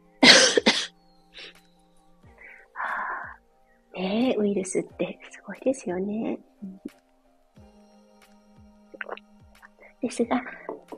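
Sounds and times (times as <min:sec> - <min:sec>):
person coughing: 0:00.2 - 0:01.5
speech: 0:04.0 - 0:07.0, 0:10.0 - 0:10.7.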